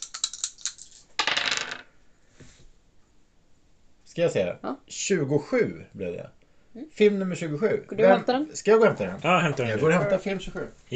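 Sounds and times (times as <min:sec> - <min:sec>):
two ten-sided dice being rolled: 0:00.0 - 0:01.9
speech: 0:04.2 - 0:10.9.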